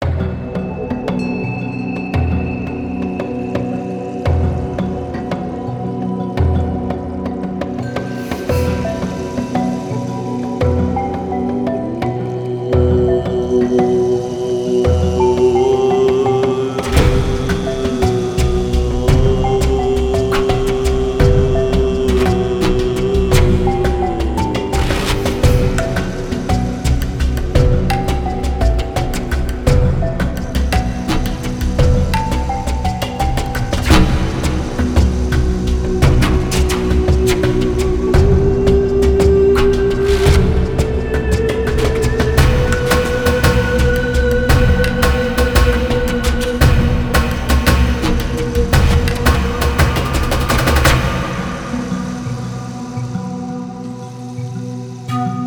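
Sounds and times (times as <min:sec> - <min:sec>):
forest ritual music: 0:00.0 - 0:55.4.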